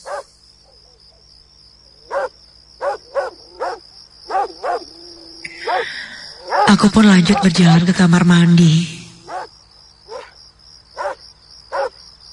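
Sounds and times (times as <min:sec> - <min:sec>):
dog barking: 0:00.0 - 0:01.3, 0:02.0 - 0:05.0, 0:05.6 - 0:06.7, 0:09.2 - 0:09.5, 0:10.1 - 0:12.0
speech: 0:06.7 - 0:08.9.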